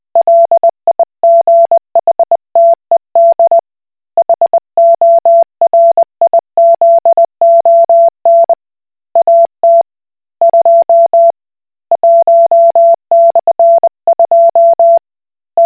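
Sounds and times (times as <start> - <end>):
Koch Morse code beeps: 0.2 - 3.6, 4.2 - 8.6, 10.4 - 11.3, 12.0 - 15.0.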